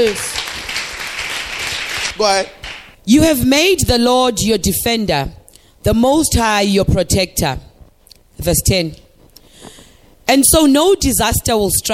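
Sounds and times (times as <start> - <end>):
speech: 0.0 - 0.4, 2.2 - 7.7, 8.4 - 9.0, 9.6 - 11.9
congregation clapping during a church sermon: 0.0 - 3.0.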